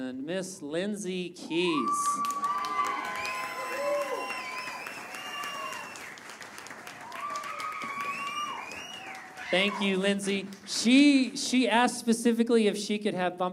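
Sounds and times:
speech: 0.2s - 2.5s, 9.5s - 13.5s
audience cheering and applauding: 1.7s - 11.3s.

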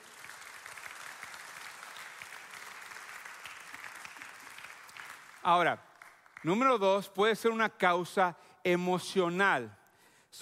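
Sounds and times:
loud audience applause: 0.0s - 6.6s
speech: 5.4s - 10.4s.

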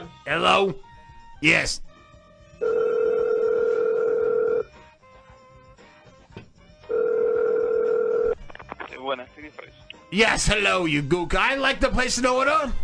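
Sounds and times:
speech: 0.2s - 1.9s, 9.1s - 12.8s
telephone ringback tone on a call: 2.6s - 4.7s, 6.8s - 8.4s.

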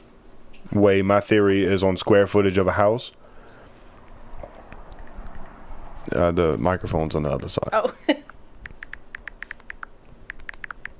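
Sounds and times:
low hiss: 0.0s - 10.9s
speech: 0.7s - 3.2s, 6.1s - 8.3s
typing on a computer keyboard: 4.9s - 5.6s, 8.6s - 10.9s.

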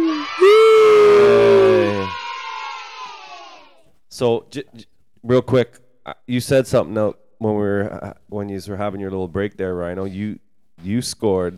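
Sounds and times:
crowd cheering sound effect: 0.0s - 3.8s
speech: 4.2s - 11.5s.

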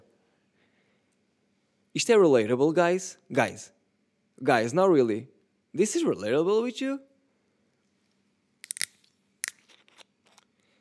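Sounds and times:
speech: 2.0s - 3.8s, 4.4s - 7.1s
sparkling mineral water bottle being opened: 8.6s - 10.5s.

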